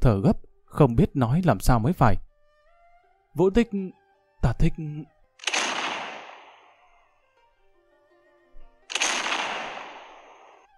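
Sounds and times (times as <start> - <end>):
speech: 0.0 - 2.3, 3.4 - 5.1
distant cannon fire booming: 5.4 - 6.8, 8.9 - 10.7.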